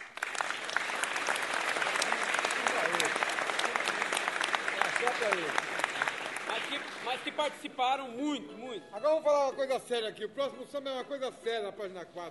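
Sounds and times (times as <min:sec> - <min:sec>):
audience applause: 0:00.0 - 0:07.6
speech: 0:07.2 - 0:12.2.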